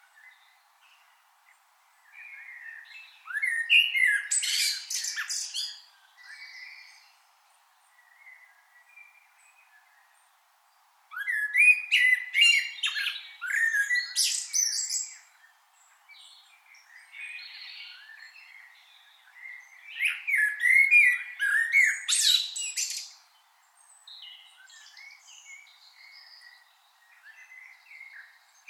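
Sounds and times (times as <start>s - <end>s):
common blackbird calls: 2.2s - 7.2s, 11.1s - 15.3s, 16.3s - 23.2s, 24.2s - 28.6s.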